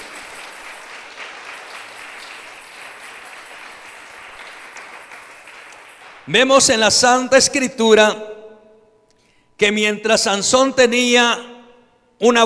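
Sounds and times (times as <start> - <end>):
audience applause: 0.0 - 6.7
speech: 6.3 - 8.3, 9.6 - 11.5, 12.2 - 12.4.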